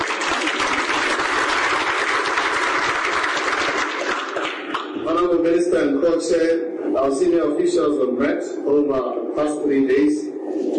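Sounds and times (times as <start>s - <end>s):
audience clapping: 0.0s - 5.0s
speech: 6.1s - 10.7s.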